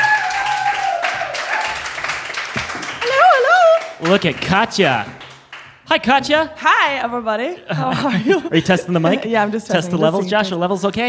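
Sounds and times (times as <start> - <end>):
audience applause: 0.0 - 5.8
speech: 4.0 - 5.2, 5.9 - 11.0
laughter: 7.7 - 10.0.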